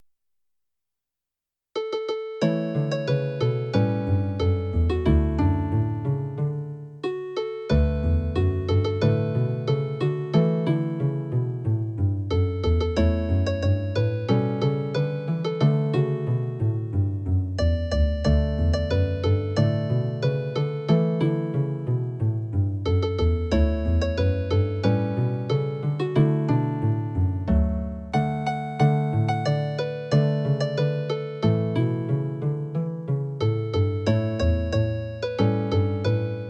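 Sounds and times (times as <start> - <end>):
dulcimer: 1.8 - 36.4
bass: 2.4 - 36.4.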